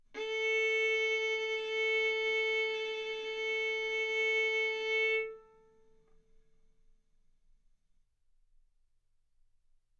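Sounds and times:
violin arco on A string: 0.2s - 5.9s.

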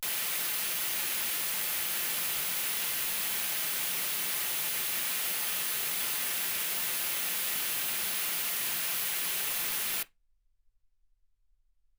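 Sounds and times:
white gaussian noise at 48kHz: 0.0s - 10.0s.

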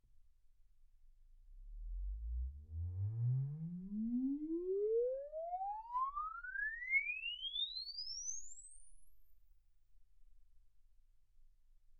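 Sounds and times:
exponential sine sweep from 10 Hz to 24 kHz: 3.0s - 9.4s.

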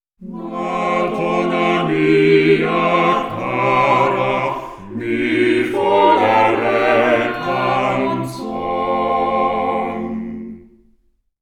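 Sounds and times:
quartet playing: 0.2s - 10.3s.

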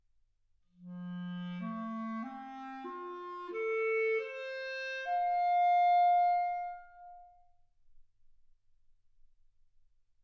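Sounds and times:
clarinet: 0.8s - 7.5s.

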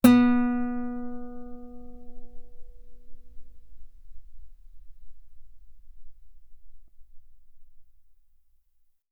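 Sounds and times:
loud guitar note on the B string: 0.0s - 4.8s.

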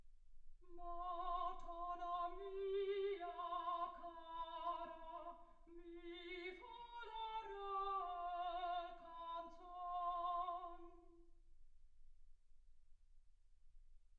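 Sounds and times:
soprano singing: 0.6s - 11.2s.

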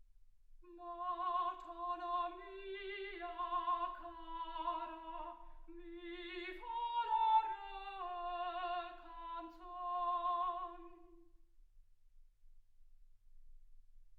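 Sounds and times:
soprano singing: 0.6s - 11.3s.

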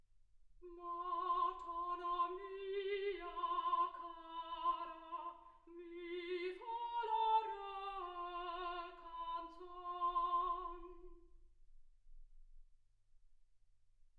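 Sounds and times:
soprano singing: 0.6s - 11.3s.

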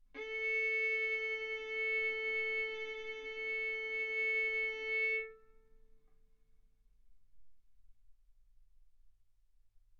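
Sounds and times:
violin bowed mezzo-forte on the A string, A4 and B4: 0.2s - 5.5s.

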